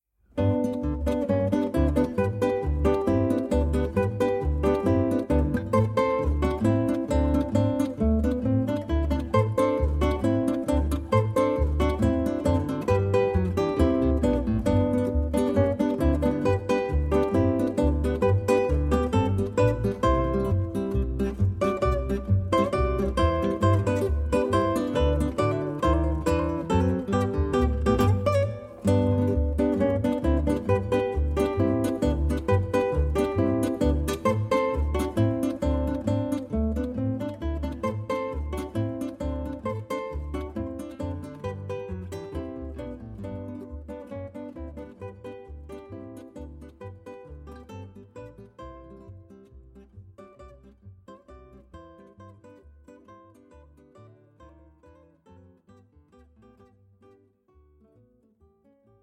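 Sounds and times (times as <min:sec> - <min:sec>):
polka music: 0:00.4 - 0:47.5.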